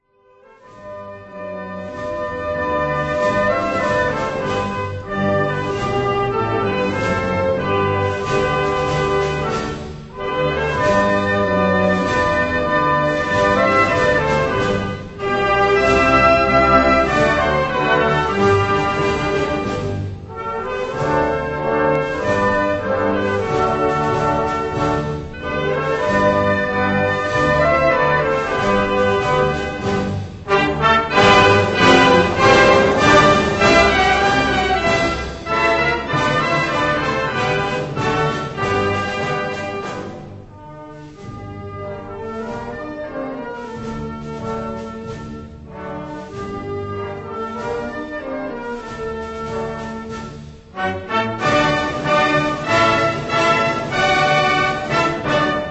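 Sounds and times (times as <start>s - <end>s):
orchestral anthem: 0.1s - 55.6s.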